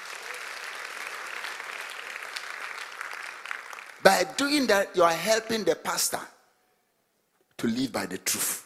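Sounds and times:
audience applause: 0:00.0 - 0:04.2
speech: 0:04.0 - 0:06.4, 0:07.6 - 0:08.6.

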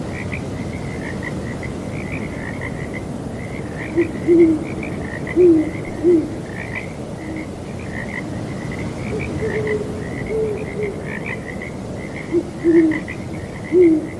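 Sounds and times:
frogs croaking in chorus: 0:00.0 - 0:14.1
soft wind: 0:00.0 - 0:14.1
owl hooting: 0:03.9 - 0:06.4, 0:09.1 - 0:11.2, 0:12.3 - 0:13.1, 0:13.7 - 0:14.1.

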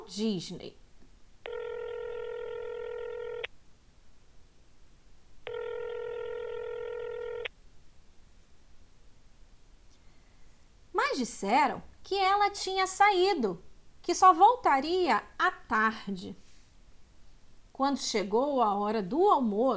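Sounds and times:
faint hiss: 0:00.0 - 0:19.7
speech: 0:00.1 - 0:00.8, 0:11.2 - 0:16.4, 0:17.8 - 0:19.7
telephone number being dialled with long electronic tones: 0:01.4 - 0:03.5, 0:05.4 - 0:07.5.

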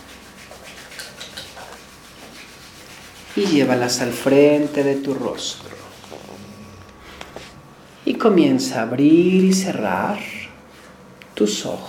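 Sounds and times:
palms rubbing together: 0:00.0 - 0:07.6
speech: 0:03.4 - 0:05.8, 0:08.2 - 0:10.4, 0:11.4 - 0:11.8.

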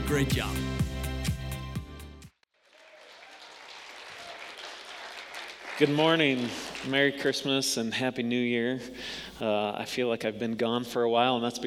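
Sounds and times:
music: 0:00.0 - 0:02.4
speech: 0:00.1 - 0:00.7, 0:05.8 - 0:11.6
audience applause at a church service welcoming the campus pastor team: 0:02.5 - 0:06.9.

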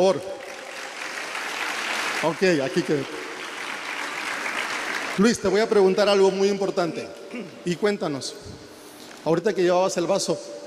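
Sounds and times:
speech: 0:00.0 - 0:00.4, 0:02.2 - 0:03.2, 0:05.2 - 0:10.6
audience applause: 0:00.0 - 0:05.3.

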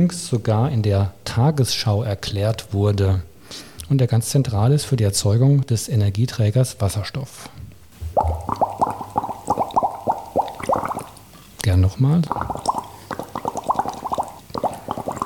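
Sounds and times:
speech: 0:00.0 - 0:07.6, 0:11.6 - 0:12.6
blowing bubbles through a straw in water: 0:08.0 - 0:11.4, 0:12.1 - 0:15.2.

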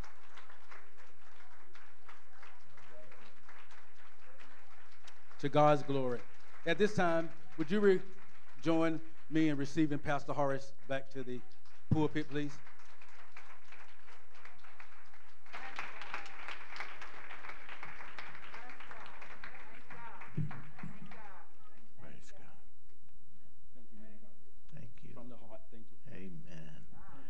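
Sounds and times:
audience applauding: 0:00.0 - 0:21.5
speech: 0:05.4 - 0:12.7.

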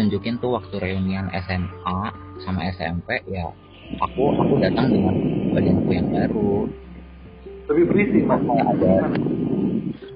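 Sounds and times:
speech: 0:00.0 - 0:06.8, 0:07.7 - 0:09.4
blower whooshing roar: 0:03.8 - 0:10.1
faint thin whine: 0:03.8 - 0:10.1.

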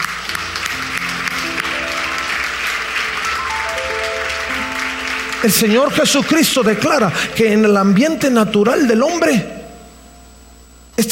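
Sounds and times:
audience applause: 0:00.0 - 0:07.2
speech: 0:05.4 - 0:09.6, 0:11.0 - 0:11.1.

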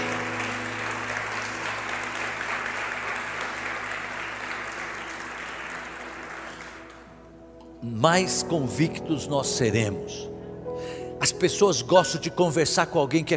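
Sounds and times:
audience applause: 0:00.0 - 0:07.1
speech: 0:07.8 - 0:10.3, 0:11.2 - 0:13.3.

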